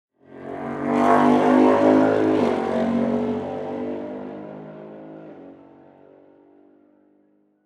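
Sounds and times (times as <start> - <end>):
speedway: 0.2 - 7.1.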